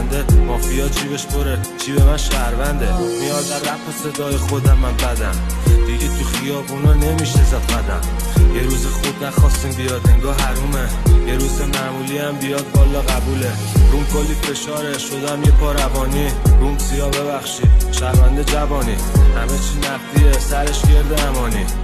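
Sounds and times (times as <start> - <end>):
rap remix: 0.0 - 21.8.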